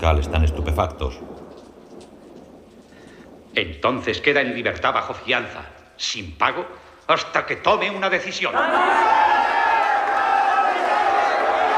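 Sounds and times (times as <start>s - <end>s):
speech: 0.0s - 1.4s, 3.6s - 9.3s
crowd cheering and shouting as Gandhi leaves the courtroom: 8.5s - 11.7s.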